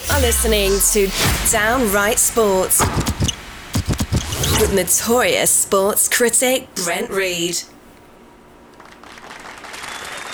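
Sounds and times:
speech: 0.2 - 3.2, 4.6 - 7.7
artificial canned applause sound effect: 8.8 - 10.3.

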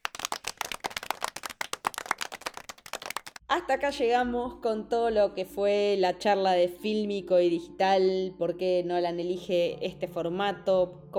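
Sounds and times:
applause: 0.0 - 3.4
speech: 3.5 - 11.1.

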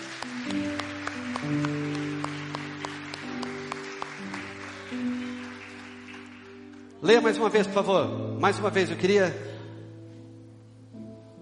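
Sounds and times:
audience applauding: 0.0 - 7.0
speech: 7.1 - 9.5.

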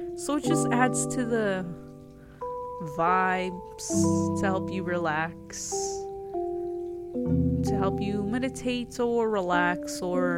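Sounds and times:
speech: 0.0 - 1.8, 2.8 - 6.0, 7.1 - 10.3
water fountain trickling: 0.0 - 10.3.

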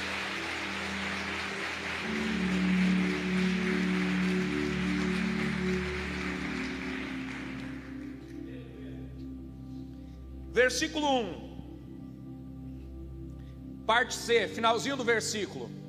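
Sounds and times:
crowd applauding: 0.0 - 8.5
sustained keyboard chord: 0.0 - 15.8
speech: 10.6 - 11.4, 13.9 - 15.8.

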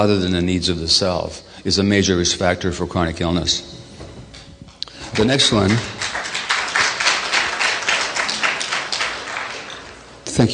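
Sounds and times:
speech: 0.0 - 3.8, 5.1 - 6.0, 10.4 - 10.5
audience applause: 4.9 - 10.2.

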